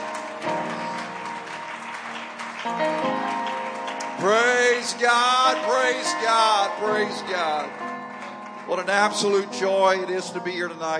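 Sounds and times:
audience applause: 0.0 - 10.2
organ or keyboard chords: 0.0 - 10.9
speech: 2.6 - 2.8, 4.2 - 8.0, 8.7 - 10.9.

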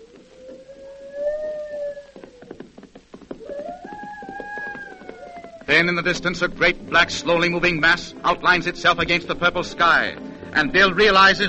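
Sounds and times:
wolf or coyote howling: 0.0 - 2.5, 3.4 - 5.7
speech: 5.7 - 11.4.

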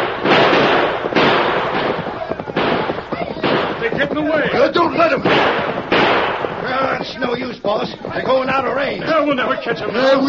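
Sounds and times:
gunshots fired during a chase: 0.0 - 7.6
speech: 7.2 - 10.2.

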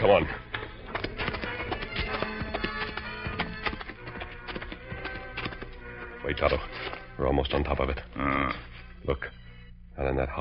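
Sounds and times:
speech: 0.0 - 0.5, 6.3 - 9.4, 10.0 - 10.3
horses' hooves clip-clopping: 0.0 - 7.9.

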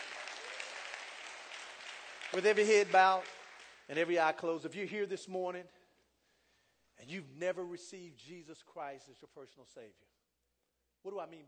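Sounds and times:
audience applause: 0.0 - 3.9
speech: 2.3 - 5.8, 7.0 - 10.1, 11.0 - 11.4.

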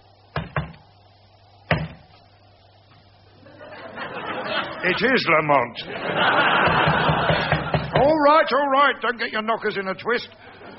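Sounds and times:
laughter: 3.4 - 8.0, 10.4 - 10.7
speech: 4.8 - 7.1, 8.2 - 10.4
knocking: 6.7 - 8.1.

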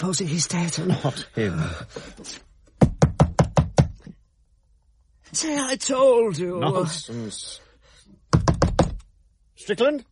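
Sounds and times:
speech: 0.0 - 2.5, 5.3 - 7.6, 9.6 - 10.0
knocking on a door: 2.8 - 4.1, 8.3 - 9.0.

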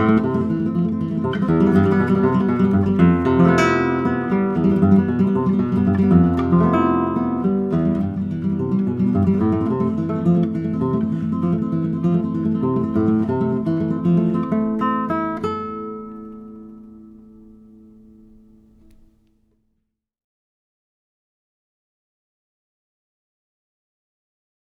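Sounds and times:
classical guitar: 0.0 - 19.4.

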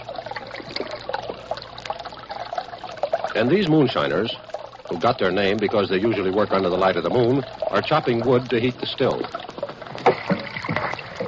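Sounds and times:
brook water trickling: 0.0 - 11.2
speech: 3.4 - 9.4.

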